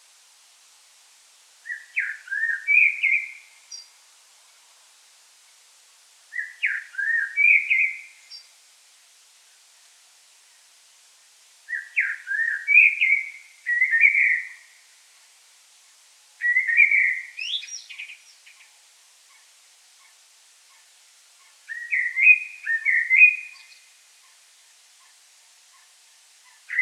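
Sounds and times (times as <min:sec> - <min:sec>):
common blackbird whistling: 0:01.7 - 0:03.4, 0:06.4 - 0:08.1, 0:11.7 - 0:14.6, 0:16.4 - 0:18.2, 0:21.7 - 0:23.7.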